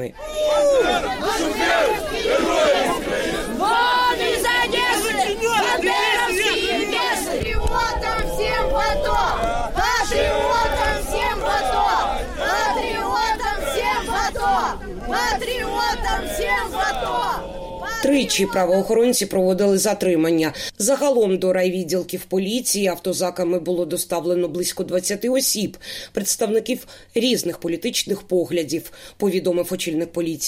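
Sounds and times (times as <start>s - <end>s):
speech: 0.0s - 2.7s, 18.1s - 30.4s
crowd shouting in a scuffle with police: 0.0s - 18.9s.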